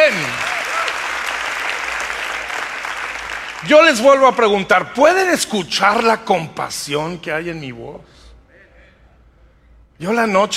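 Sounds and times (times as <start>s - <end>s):
audience applauding: 0.0s - 4.6s
speech: 3.6s - 8.2s, 10.0s - 10.5s.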